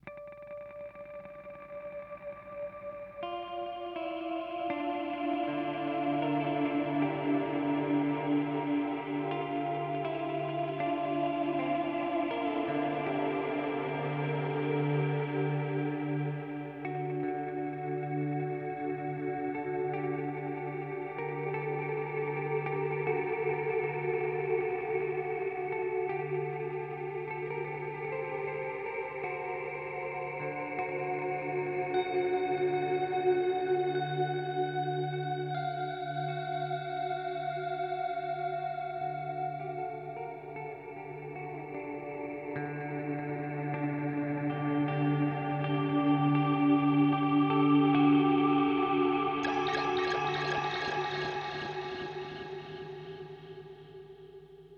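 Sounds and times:
guitar through HX Stomp Particle reverb effect: 0.0 - 54.7.

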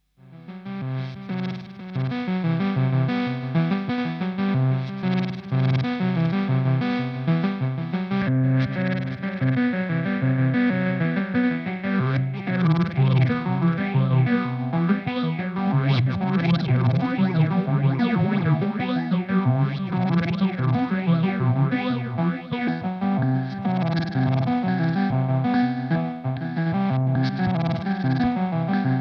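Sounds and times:
Dreadbox Lethargy analog synthesizer: 0.2 - 28.9.

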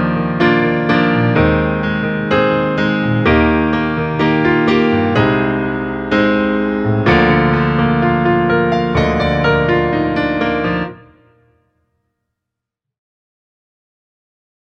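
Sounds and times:
studio grand piano playing ballads: 0.0 - 11.6.

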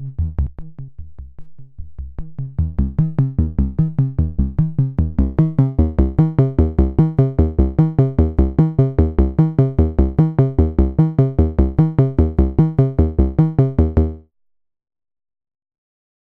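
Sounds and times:
Erica Synths Black System EG2 modulating VCF filter: 2.6 - 14.2.

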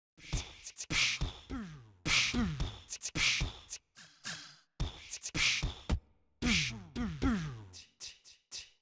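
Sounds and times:
beatbox percussion: 0.2 - 8.7.

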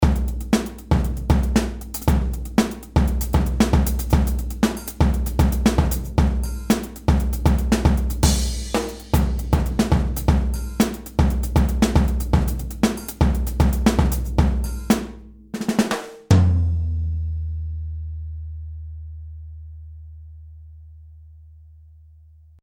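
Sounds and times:
DW Black Oyster drum kit playing funk: 0.0 - 17.2.

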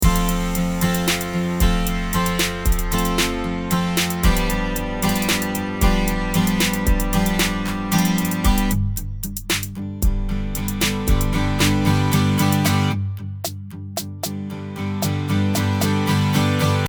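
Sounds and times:
acoustic guitar strumming: 0.0 - 16.8.

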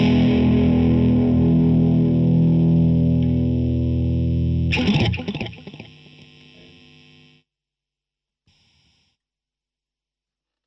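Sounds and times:
Strat Classic electric guitar: 0.0 - 6.8.

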